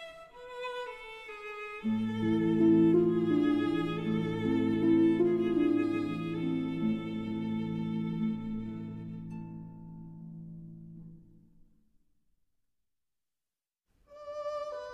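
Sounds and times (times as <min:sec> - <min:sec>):
berceuse for violin and harp: 0:00.0 - 0:10.2, 0:14.1 - 0:14.9.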